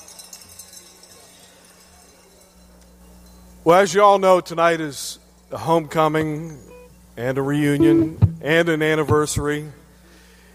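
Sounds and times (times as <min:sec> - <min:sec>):
audience ringing cowbells: 0:00.0 - 0:04.3
speech: 0:03.6 - 0:09.8.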